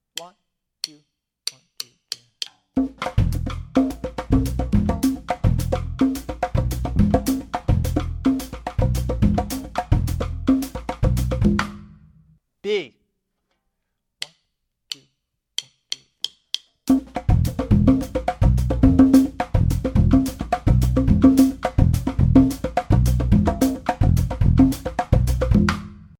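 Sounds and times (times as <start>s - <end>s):
songo rhythm percussion: 0.8s - 11.9s, 15.6s - 26.1s.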